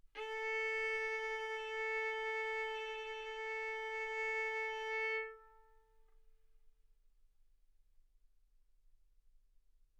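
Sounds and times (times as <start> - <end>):
violin arco on A string: 0.2 - 5.9.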